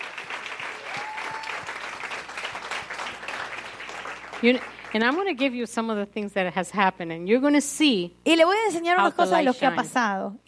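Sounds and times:
audience applauding: 0.0s - 5.4s
speech: 4.4s - 10.4s.

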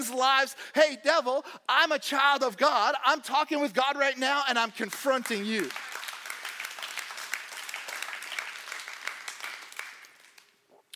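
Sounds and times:
speech: 0.0s - 5.9s
crowd applauding: 4.9s - 10.5s.

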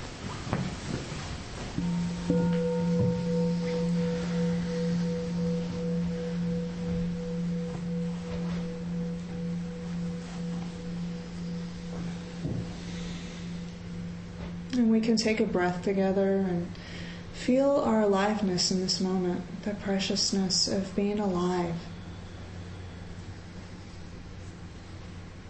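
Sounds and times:
meditation bell ringing: 1.8s - 17.1s
speech: 2.3s - 2.6s, 15.1s - 21.9s.

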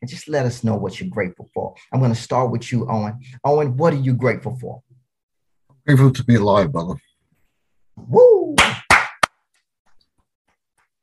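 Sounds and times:
speech: 0.0s - 4.9s, 5.9s - 7.1s, 8.0s - 8.4s
hand clap: 8.5s - 9.5s.

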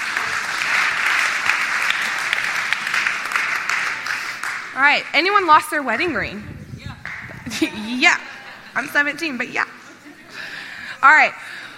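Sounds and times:
audience applause during a church evening service: 0.0s - 4.8s
speech: 4.8s - 6.6s, 7.6s - 9.6s, 11.0s - 11.6s
laughter: 7.4s - 11.0s.

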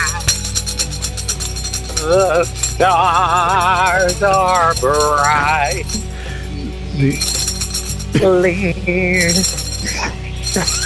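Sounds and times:
tambourine jingling: 0.0s - 10.8s
speech: 2.0s - 6.0s, 7.0s - 7.4s, 8.1s - 10.8s.

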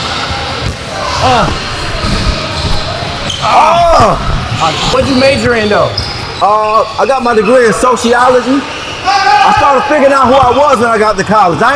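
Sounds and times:
basketball bouncing on a court during a pickup game: 0.6s - 6.2s
people talking and calling out: 0.8s - 11.7s
speech: 1.2s - 1.6s, 3.4s - 11.7s.

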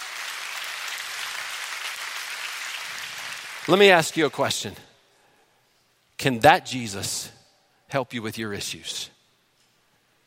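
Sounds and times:
audience clapping: 0.0s - 4.5s
speech: 3.7s - 4.9s, 6.2s - 9.2s.

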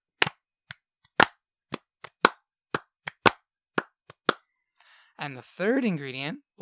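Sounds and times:
hand clapping: 0.2s - 4.5s
speech: 5.2s - 6.5s.

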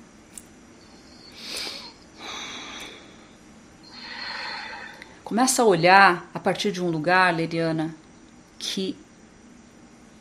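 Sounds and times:
deep breaths drawn in through the nose: 1.2s - 5.2s
speech: 5.3s - 8.0s, 8.6s - 9.0s.

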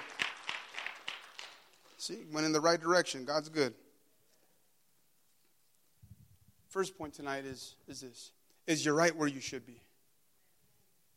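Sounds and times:
audience clapping: 0.0s - 2.1s
speech: 2.0s - 3.8s, 6.8s - 9.9s.

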